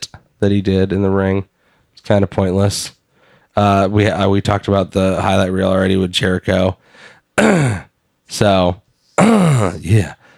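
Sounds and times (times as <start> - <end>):
speech: 0.4 - 3.0, 3.6 - 10.2
throat clearing: 7.4 - 7.9, 9.2 - 9.8.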